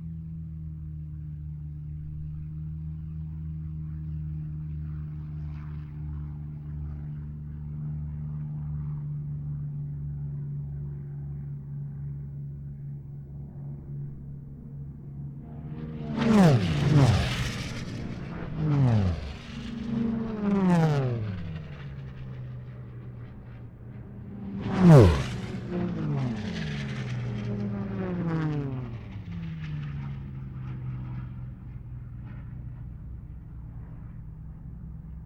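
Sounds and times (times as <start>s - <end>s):
WWII aircraft engine at air races: 0.0s - 35.2s.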